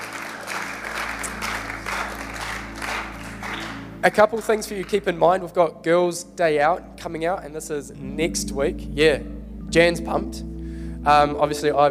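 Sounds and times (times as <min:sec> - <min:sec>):
audience applause: 0:00.0 - 0:05.1
speech: 0:04.0 - 0:11.9.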